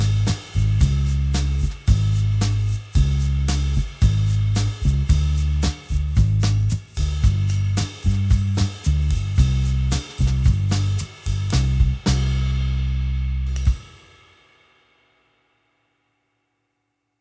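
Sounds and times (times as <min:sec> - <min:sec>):
bossa nova music: 0:00.0 - 0:13.7.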